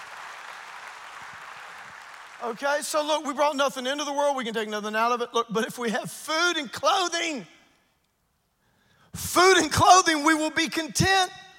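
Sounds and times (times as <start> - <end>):
audience clapping: 0.0 - 3.0
speech: 2.4 - 7.6, 9.4 - 11.4.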